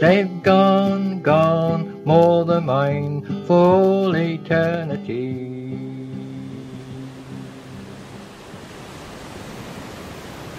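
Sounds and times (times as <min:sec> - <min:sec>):
speech: 0:00.0 - 0:01.5, 0:02.1 - 0:05.5
waves lapping at Cromer Pier: 0:03.6 - 0:10.5.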